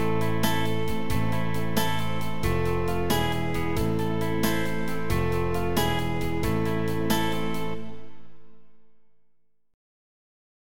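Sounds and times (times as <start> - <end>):
folk backing track: 0.0 - 8.1.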